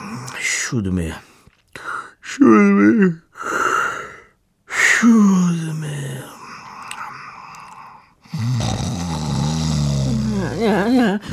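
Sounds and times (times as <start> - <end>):
speech: 0.7 - 1.3, 2.4 - 3.5, 5.0 - 5.9
snoring: 6.9 - 11.3.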